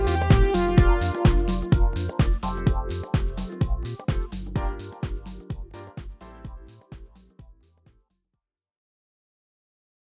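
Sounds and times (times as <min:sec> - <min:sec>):
instrumental music: 0:00.0 - 0:07.8.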